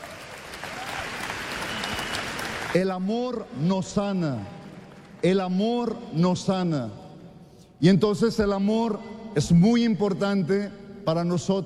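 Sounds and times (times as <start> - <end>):
audience applauding: 0.0 - 2.9
speech: 2.8 - 4.6, 5.2 - 7.0, 7.8 - 11.6.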